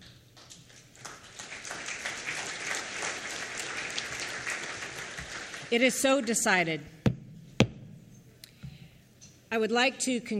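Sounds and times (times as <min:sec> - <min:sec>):
applause at the Permanent Forum on Indigenous Issues: 0:00.4 - 0:06.4
speech: 0:05.7 - 0:07.0, 0:09.5 - 0:10.3.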